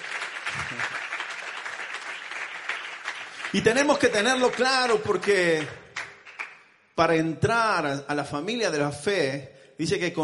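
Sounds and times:
audience applauding: 0:00.0 - 0:06.6
speech: 0:03.5 - 0:05.8, 0:07.0 - 0:10.2.

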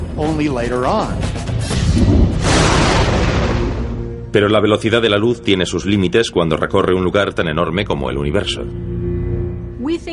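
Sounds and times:
speech: 0:00.2 - 0:02.2, 0:04.4 - 0:08.9
thunder: 0:02.0 - 0:04.2.

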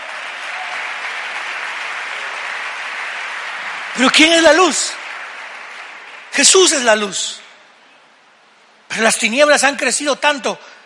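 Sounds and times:
loud applause from audience: 0:00.0 - 0:07.1
speech: 0:04.0 - 0:04.9, 0:06.4 - 0:07.4, 0:09.0 - 0:10.7.

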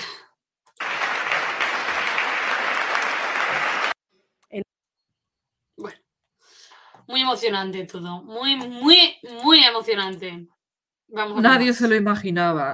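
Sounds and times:
audience applause: 0:00.8 - 0:04.0
speech: 0:07.1 - 0:12.7.

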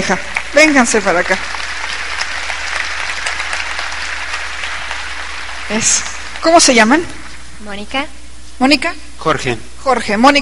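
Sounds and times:
speech: 0:00.0 - 0:01.6, 0:05.7 - 0:10.3
crowd applause: 0:00.0 - 0:07.4.

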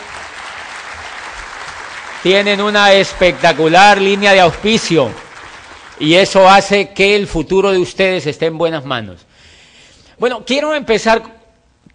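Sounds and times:
audience applause: 0:00.0 - 0:06.5
speech: 0:02.2 - 0:05.2, 0:06.0 - 0:09.3, 0:10.2 - 0:11.4.

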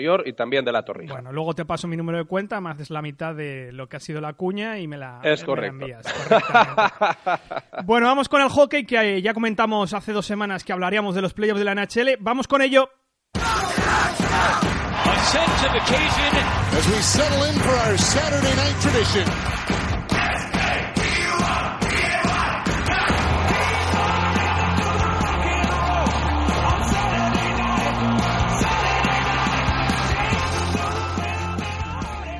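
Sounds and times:
speech: 0:00.0 - 0:19.9
laughter: 0:06.0 - 0:07.9
sports broadcast intro on TV: 0:13.4 - 0:32.3.

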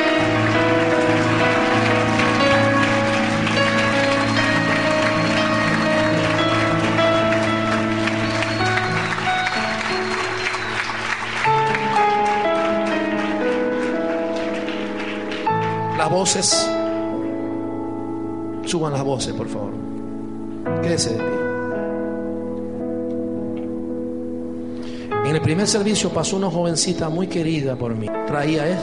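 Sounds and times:
large crowd applauding: 0:00.0 - 0:17.0
music with held keyboard chords: 0:00.0 - 0:28.8
speech: 0:16.2 - 0:16.8, 0:18.7 - 0:19.9, 0:20.6 - 0:21.4, 0:25.3 - 0:28.8.

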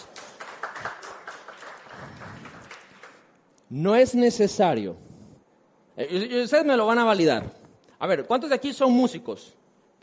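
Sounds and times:
crowd applauding: 0:00.0 - 0:03.4
speech: 0:03.7 - 0:05.0, 0:06.0 - 0:09.6.

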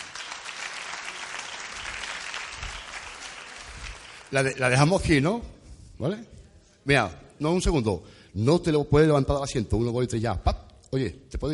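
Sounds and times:
audience applause: 0:00.0 - 0:04.7
speech: 0:04.3 - 0:11.5.

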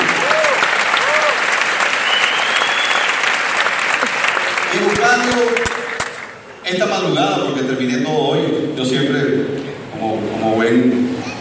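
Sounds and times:
audience applause: 0:00.0 - 0:06.5
speech: 0:06.7 - 0:11.1.

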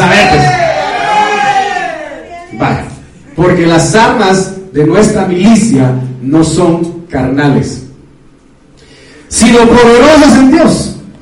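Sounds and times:
audience shouting a war cry: 0:00.1 - 0:02.3
speech: 0:03.4 - 0:07.8, 0:09.3 - 0:10.9.

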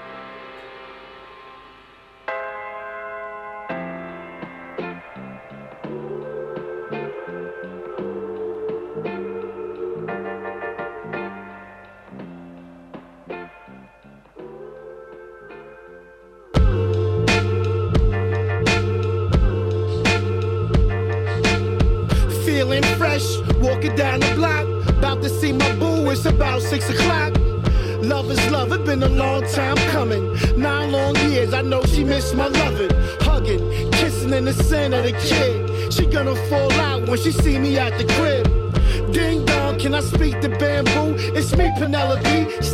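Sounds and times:
hip-hop track from an EP: 0:00.0 - 0:42.7
punchy kick drums, snares and deep bass: 0:16.6 - 0:42.7
speech: 0:25.1 - 0:27.4, 0:28.1 - 0:42.7.

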